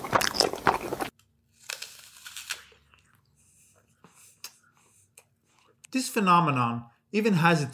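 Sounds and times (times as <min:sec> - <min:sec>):
crunching and chewing in a mukbang live stream: 0:00.0 - 0:03.4
speech: 0:06.0 - 0:07.7.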